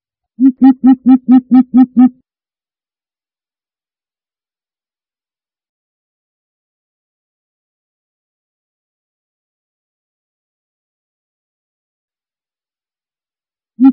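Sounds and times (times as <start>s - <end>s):
greater coucal deep hollow hoots: 0.4s - 2.1s.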